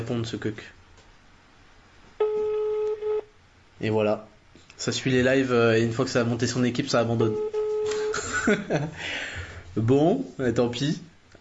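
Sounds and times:
speech: 0.0s - 0.8s, 3.8s - 7.6s, 8.4s - 11.1s
faint hiss: 0.0s - 11.4s
outgoing phone call ringing tone: 2.2s - 3.3s, 7.2s - 8.2s.

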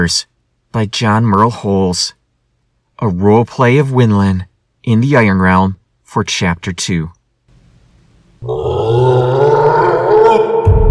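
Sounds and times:
speech: 0.0s - 2.2s, 3.0s - 7.2s, 8.4s - 9.4s
creature's deep bellow of outrage: 8.4s - 10.9s.

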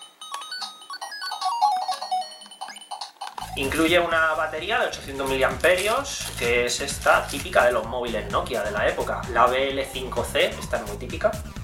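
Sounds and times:
chiptune background music from a handheld game console: 0.0s - 4.8s
speech: 3.6s - 11.6s.

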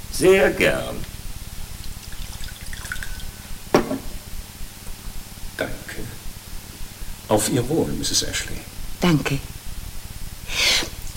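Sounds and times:
speech: 0.2s - 1.0s, 7.3s - 9.5s
sherry being poured into a glass: 2.0s - 3.3s.

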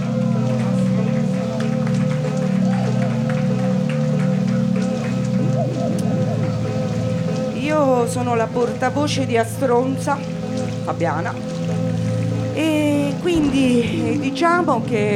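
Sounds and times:
audience applause: 0.0s - 7.6s, 12.2s - 15.1s
loud sustained low musical drone: 0.0s - 15.1s
speech: 8.1s - 11.6s, 12.6s - 15.1s.

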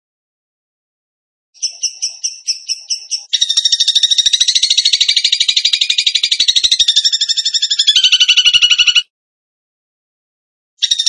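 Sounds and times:
bird singing: 1.6s - 9.1s, 10.8s - 11.0s.

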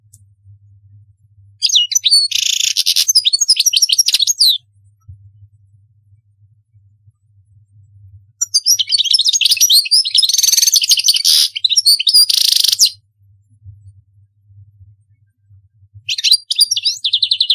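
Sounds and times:
European goldfinch singing: 1.6s - 4.6s, 8.4s - 13.0s, 16.1s - 17.5s.

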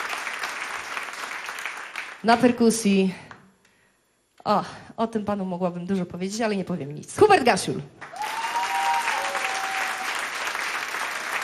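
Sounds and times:
audience applause: 0.0s - 2.2s, 8.0s - 11.4s
speech: 2.2s - 3.2s, 4.4s - 8.1s.

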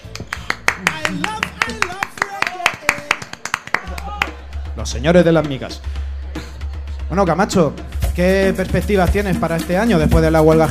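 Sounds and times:
applause: 0.0s - 4.4s
speech: 0.8s - 2.0s, 4.8s - 6.0s, 7.1s - 10.6s.

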